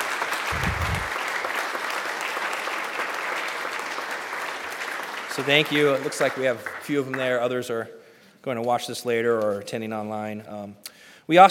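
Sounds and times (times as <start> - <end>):
church congregation applauding the teachers of its school: 0.0 - 7.5
speech: 5.4 - 11.4.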